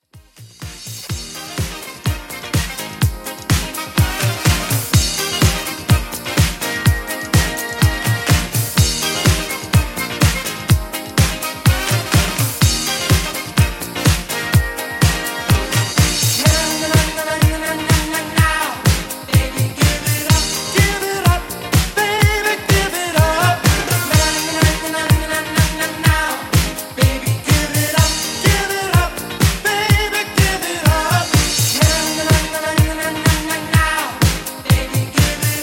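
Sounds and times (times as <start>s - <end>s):
1980s classic music mix: 0.0s - 35.6s.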